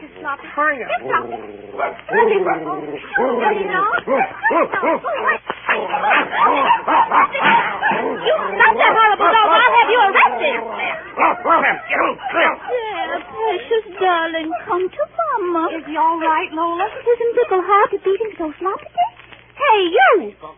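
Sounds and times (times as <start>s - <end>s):
speech: 0.2s - 20.5s
small ugly-looking dog barking and yipping: 0.9s - 13.4s
dog whimpering: 0.9s - 17.9s, 18.7s - 19.2s.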